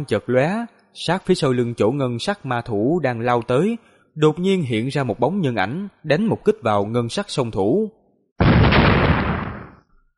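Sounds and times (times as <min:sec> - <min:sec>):
speech: 0:00.0 - 0:08.6
loud explosions: 0:08.4 - 0:09.9.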